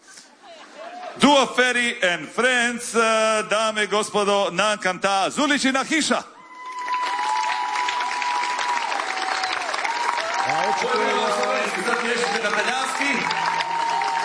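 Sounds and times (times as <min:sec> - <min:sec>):
speech: 0:01.2 - 0:06.4, 0:10.7 - 0:13.5
audience applause at a live music show: 0:06.5 - 0:14.2.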